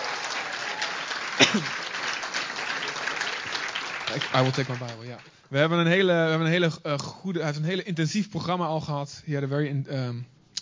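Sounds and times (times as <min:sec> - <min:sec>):
crowd applause: 0:00.0 - 0:05.3
speech: 0:01.5 - 0:01.8, 0:04.1 - 0:10.4.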